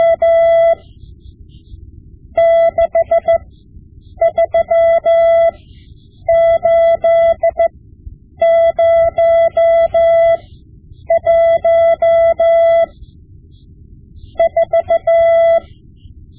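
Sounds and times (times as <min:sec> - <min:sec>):
Morse code lessons: 0:00.0 - 0:01.0, 0:02.4 - 0:03.5, 0:04.1 - 0:07.7, 0:08.4 - 0:10.5, 0:11.1 - 0:13.0, 0:14.2 - 0:15.8.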